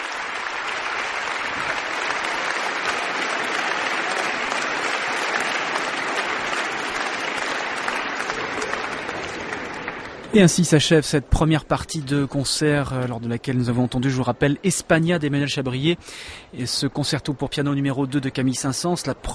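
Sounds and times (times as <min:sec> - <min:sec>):
scattered cheers: 0:00.0 - 0:10.2
concert audience applause: 0:00.0 - 0:10.3
speech: 0:10.3 - 0:19.3.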